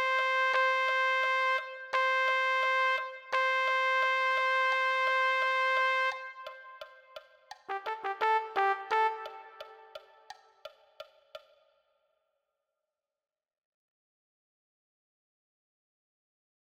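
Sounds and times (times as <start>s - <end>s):
trumpet: 0.0s - 7.0s, 7.6s - 10.3s.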